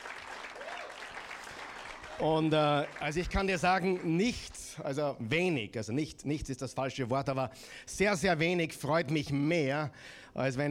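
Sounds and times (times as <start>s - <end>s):
audience applause: 0.0s - 4.6s
speech: 2.2s - 10.7s.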